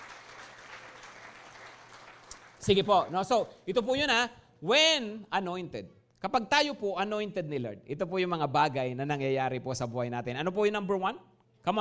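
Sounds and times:
church congregation clapping during a service: 0.0 - 3.5
speech: 2.6 - 11.7.

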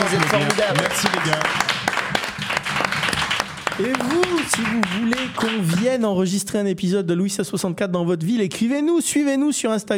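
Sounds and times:
live audience applauding: 0.0 - 6.0
speech: 0.1 - 1.8, 3.8 - 9.9.

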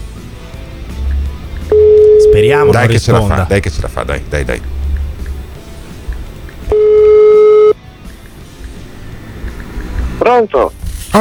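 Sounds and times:
ringback tone of an outgoing telephone call: 1.7 - 2.5, 6.7 - 7.8
speech: 2.5 - 4.8, 10.4 - 11.1.

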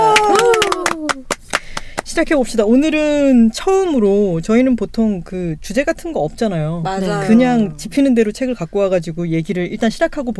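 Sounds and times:
hands clapping: 0.0 - 2.1
speech: 2.2 - 10.3.

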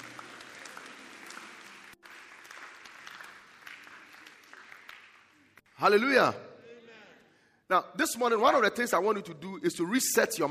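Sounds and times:
audience clapping hands: 0.0 - 5.7
speech: 5.8 - 6.5, 7.7 - 10.5.

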